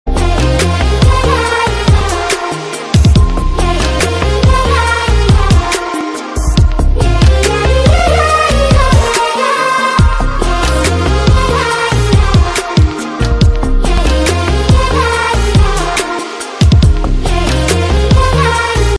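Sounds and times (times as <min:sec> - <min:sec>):
Tamil ringtone: 0:00.1 - 0:18.9.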